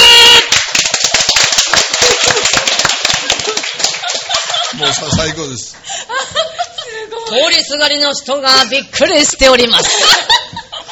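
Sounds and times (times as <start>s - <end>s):
hand clapping: 0.4s - 4.8s
laughter: 2.0s - 7.3s, 9.5s - 10.8s
speech: 5.2s - 5.9s, 7.3s - 10.4s.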